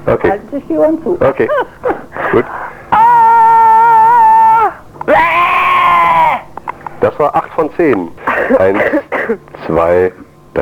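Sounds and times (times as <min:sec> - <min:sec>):
speech: 0:00.0 - 0:02.6, 0:07.2 - 0:10.6
person screaming as loud as possible: 0:02.9 - 0:06.5.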